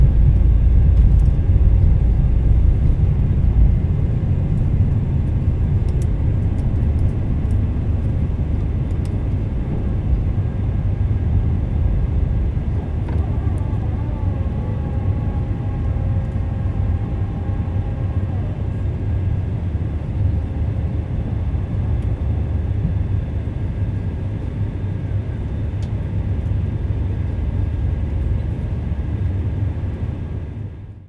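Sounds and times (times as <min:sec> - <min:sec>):
A319 jet cabin noise during take off: 0:00.0 - 0:31.0.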